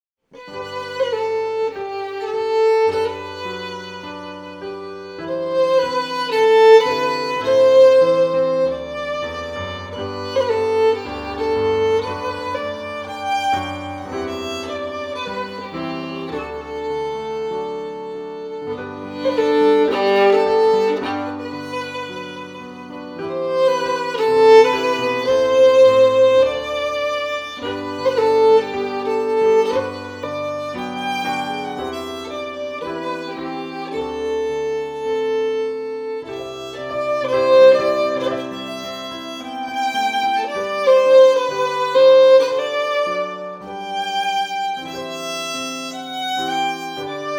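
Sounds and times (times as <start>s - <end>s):
piano: 0.2s - 47.3s
fiddle: 0.3s - 47.3s.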